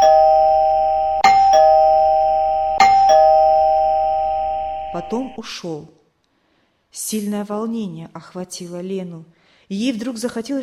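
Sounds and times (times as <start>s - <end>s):
doorbell ringing two-note ding-dong: 0.0s - 5.4s
steady humming electronic chime tone: 0.0s - 5.5s
speech: 5.0s - 6.0s, 6.9s - 10.6s.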